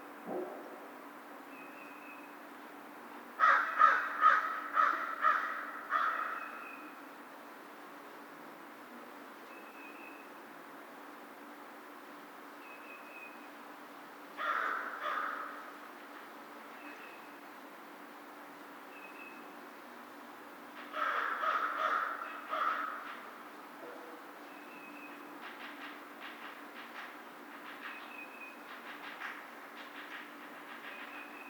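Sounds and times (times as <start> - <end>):
American crow harsh nasal caws: 3.4 - 6.4, 14.4 - 15.7, 20.9 - 23.1.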